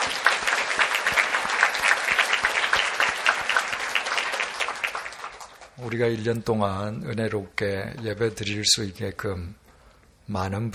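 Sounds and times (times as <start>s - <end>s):
audience applause: 0.0s - 5.9s
speech: 5.8s - 9.6s, 10.3s - 10.7s.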